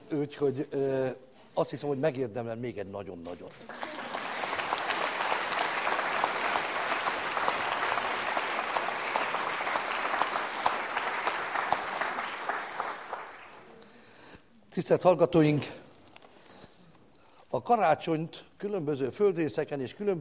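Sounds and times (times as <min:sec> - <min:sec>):
speech: 0:00.1 - 0:03.8, 0:14.8 - 0:15.8, 0:17.5 - 0:20.1
audience applause: 0:03.5 - 0:13.8.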